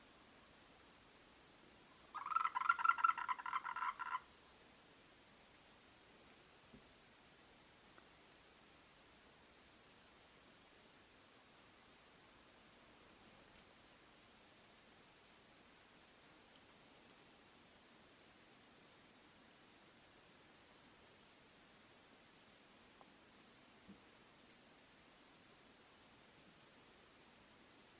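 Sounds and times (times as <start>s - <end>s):
frogs croaking in chorus: 1.9s - 4.6s.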